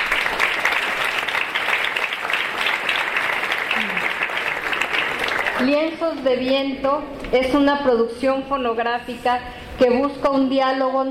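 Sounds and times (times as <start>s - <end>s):
audience applause: 0.0s - 6.1s
speech: 5.6s - 11.1s.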